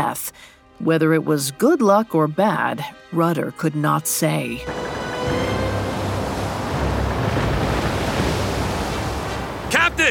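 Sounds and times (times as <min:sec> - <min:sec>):
speech: 0:00.0 - 0:05.5
stormy sea: 0:04.6 - 0:10.0
strong wind: 0:04.7 - 0:09.8.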